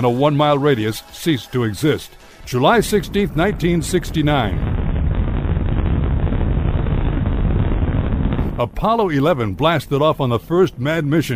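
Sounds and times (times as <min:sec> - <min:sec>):
speech: 0:00.0 - 0:04.7, 0:08.6 - 0:11.3
atomic bomb test explosion at Alamogordo in the New Mexico desert: 0:02.2 - 0:10.0.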